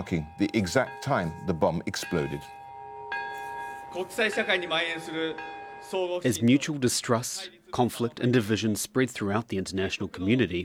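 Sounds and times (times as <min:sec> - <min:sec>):
speech: 0:00.0 - 0:02.6, 0:03.9 - 0:10.6
peace bell chiming: 0:00.0 - 0:07.5.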